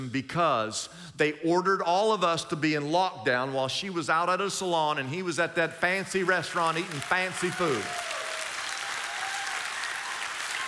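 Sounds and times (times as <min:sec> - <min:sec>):
speech: 0:00.0 - 0:08.1
audience applauding during a church sermon: 0:06.0 - 0:10.6.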